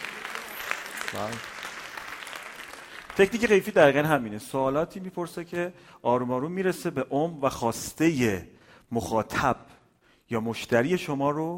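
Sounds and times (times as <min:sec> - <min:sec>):
audience applause: 0:00.0 - 0:04.0
speech: 0:01.1 - 0:01.6, 0:03.2 - 0:09.7, 0:10.3 - 0:11.5.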